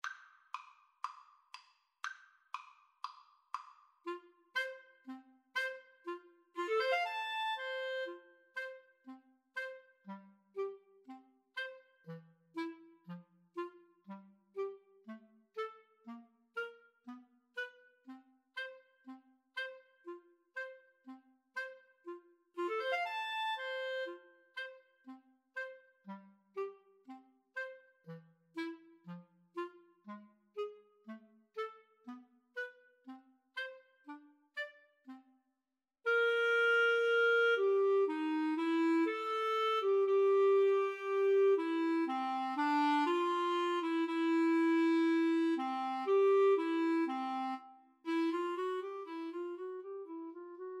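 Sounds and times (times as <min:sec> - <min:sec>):
clarinet duet: 0:04.0 - 0:35.4, 0:36.0 - 0:50.7.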